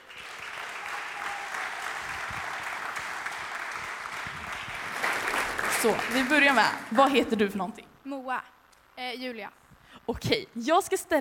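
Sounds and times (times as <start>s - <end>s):
audience applause: 0.0s - 6.9s
speech: 5.8s - 11.1s.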